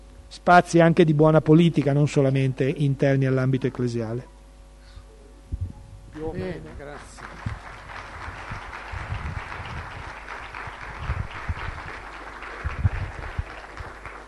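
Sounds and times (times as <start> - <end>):
speech: 0.3 - 4.3, 6.2 - 7.1
audience applause: 6.5 - 14.2.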